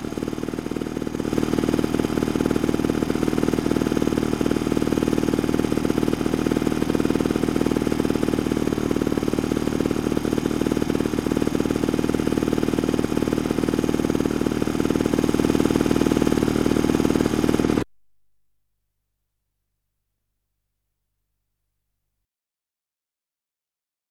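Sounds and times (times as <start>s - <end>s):
internal combustion engine running: 0.0s - 17.9s.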